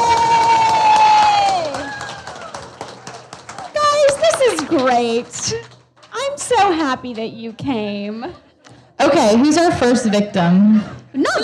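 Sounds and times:
audience applause and cheering: 0:00.0 - 0:06.6
speech: 0:04.7 - 0:05.7, 0:06.5 - 0:08.4, 0:09.0 - 0:11.4.

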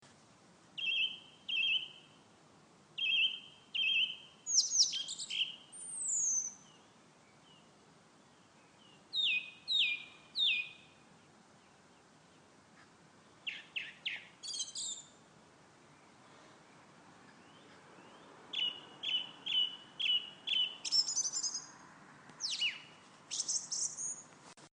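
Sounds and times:
songbird: 0:00.0 - 0:24.7.

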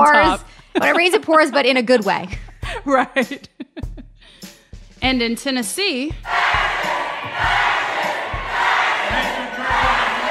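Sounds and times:
speech: 0:00.0 - 0:03.8, 0:05.0 - 0:06.4
protesters yelling in Tennessee House of Representatives gallery: 0:06.3 - 0:10.2.

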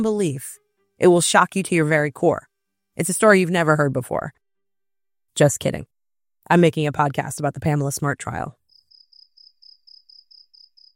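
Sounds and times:
speech: 0:00.0 - 0:04.4, 0:05.4 - 0:08.6
crickets chirping: 0:08.7 - 0:10.9.

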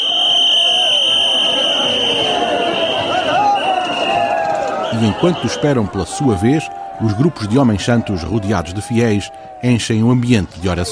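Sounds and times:
police whistles: 0:00.0 - 0:05.9
speech: 0:05.0 - 0:10.9.

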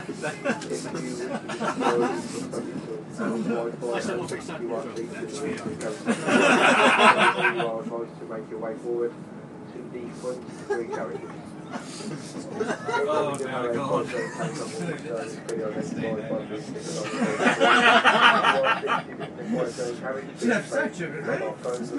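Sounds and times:
people laughing on a train: 0:00.0 - 0:02.6, 0:05.8 - 0:07.9, 0:10.5 - 0:15.0, 0:16.8 - 0:19.9
people conversing on a train: 0:00.0 - 0:21.9.

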